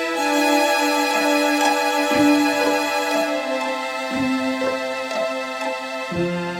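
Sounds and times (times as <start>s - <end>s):
strings playing: 0.2s - 6.4s.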